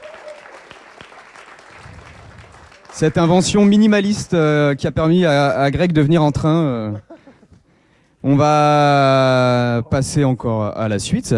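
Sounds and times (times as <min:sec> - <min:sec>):
audience applause: 0:00.0 - 0:04.0
speech: 0:03.0 - 0:07.1, 0:08.2 - 0:11.3.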